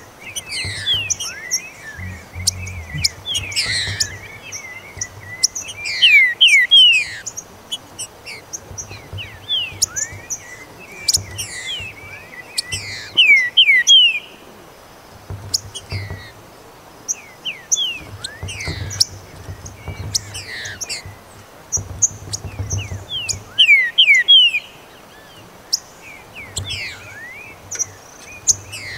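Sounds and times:
Green-winged saltator whistled song: 0:00.0 - 0:07.4, 0:08.0 - 0:14.4, 0:17.1 - 0:28.9
sharp high chirps: 0:00.6 - 0:04.3.

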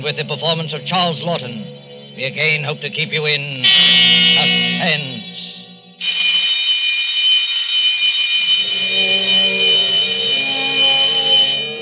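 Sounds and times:
speech: 0:00.0 - 0:05.2
library closing bell ringing: 0:03.6 - 0:11.8.

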